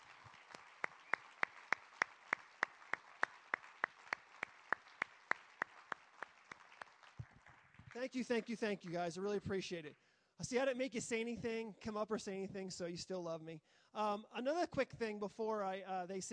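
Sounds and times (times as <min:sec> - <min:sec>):
audience applause: 0:00.0 - 0:09.0
speech: 0:08.0 - 0:16.3.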